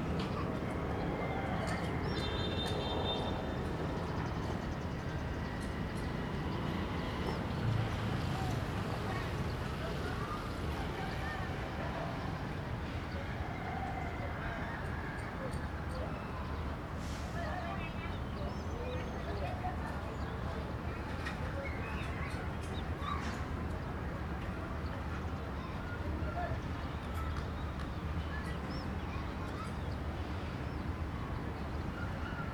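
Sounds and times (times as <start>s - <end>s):
street ambient noise in Phnom Penh Cambodia: 0.0s - 32.5s.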